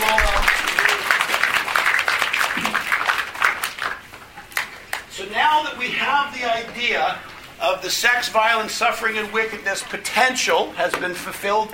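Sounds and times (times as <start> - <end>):
round of applause: 0.0 - 5.1
speech: 6.4 - 11.7.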